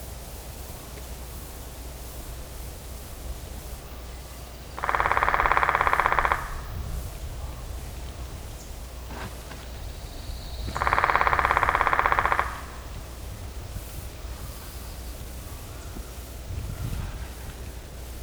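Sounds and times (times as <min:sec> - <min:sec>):
Island Woodpecker: 0:04.0 - 0:16.4.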